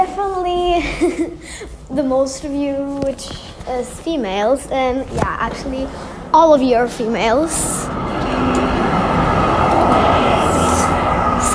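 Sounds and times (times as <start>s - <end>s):
speech: 1.0s - 8.5s
bus passing: 4.2s - 11.5s.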